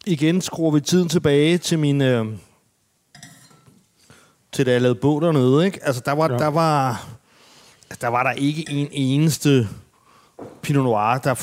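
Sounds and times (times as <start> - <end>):
speech: 0.0 - 2.5, 4.6 - 7.2, 8.0 - 9.8, 10.4 - 11.4
wine glasses clinking as they are swapped: 3.1 - 4.0, 8.4 - 9.4.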